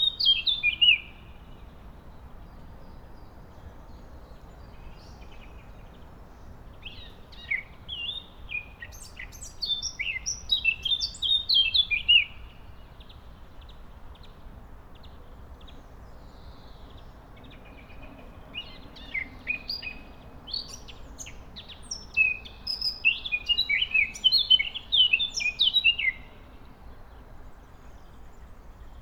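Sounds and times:
Eurasian blackcap song: 0.0s - 1.4s, 6.8s - 13.1s, 16.4s - 26.6s
steady low hiss: 0.0s - 28.9s.

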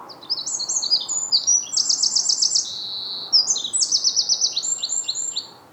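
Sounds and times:
Eurasian wren twittering song: 0.1s - 5.6s.

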